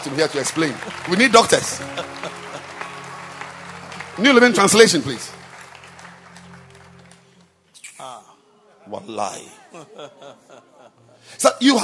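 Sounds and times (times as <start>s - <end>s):
speech: 0.0s - 2.4s, 4.2s - 5.4s, 8.9s - 11.8s
audience clapping: 0.0s - 7.7s
laughter: 0.8s - 5.0s, 9.6s - 11.2s.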